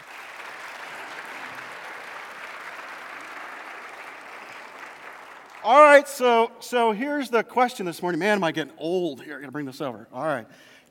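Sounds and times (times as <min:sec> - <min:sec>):
audience applause: 0:00.0 - 0:06.0
speech: 0:05.6 - 0:10.9.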